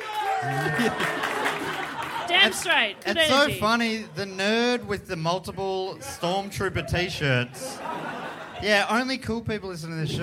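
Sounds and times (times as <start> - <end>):
audience round of applause: 0.0 - 3.4
laughter: 0.3 - 9.1
speech: 0.4 - 1.3, 2.4 - 8.0, 8.6 - 10.2.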